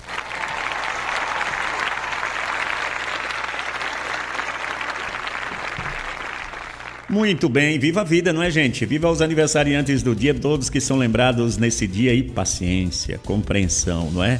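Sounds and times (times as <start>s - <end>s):
applause from a group: 0.0s - 7.2s
speech: 7.1s - 14.3s.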